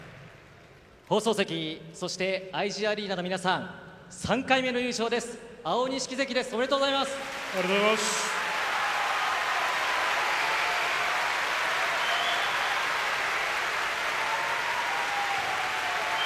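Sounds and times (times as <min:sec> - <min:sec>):
speech: 0:01.1 - 0:08.3
applause from arena audience: 0:06.6 - 0:16.2.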